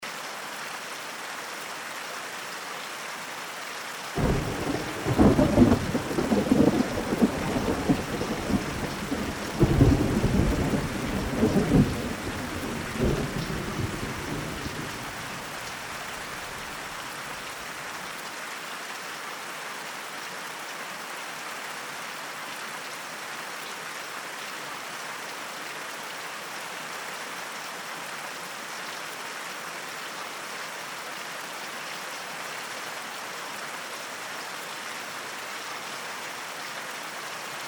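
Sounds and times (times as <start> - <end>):
thunderstorm: 4.2 - 15.6.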